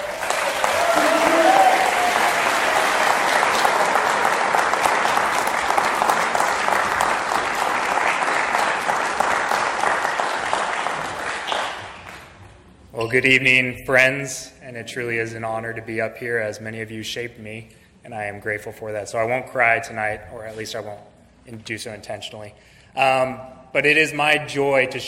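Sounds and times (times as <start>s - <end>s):
audience at a Cornerstone gathering applauding a speaker: 0.0s - 12.4s
speech: 13.1s - 25.0s.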